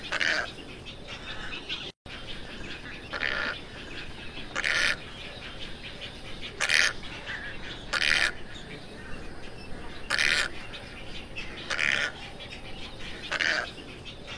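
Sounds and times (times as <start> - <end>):
tricolored heron squawks: 0.0 - 1.8, 2.8 - 5.2, 6.4 - 12.3, 13.0 - 14.3.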